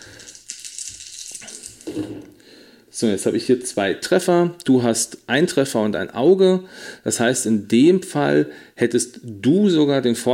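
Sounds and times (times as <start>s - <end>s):
dice rattling and clattering across a surface: 0.0s - 2.3s
speech: 3.0s - 10.3s.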